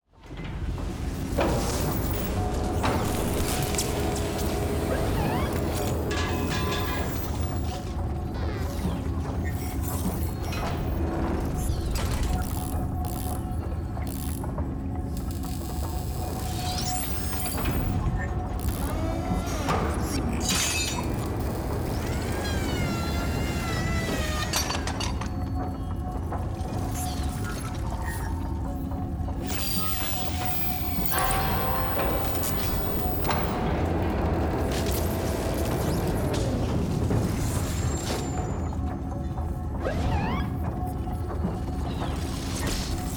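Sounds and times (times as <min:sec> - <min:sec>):
music: 0:00.0 - 0:43.1.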